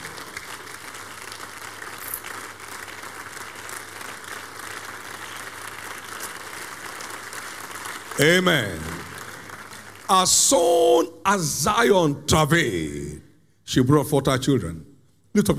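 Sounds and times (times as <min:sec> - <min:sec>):
audience clapping in praise: 0:00.0 - 0:11.1
speech: 0:08.2 - 0:09.0, 0:10.1 - 0:15.5.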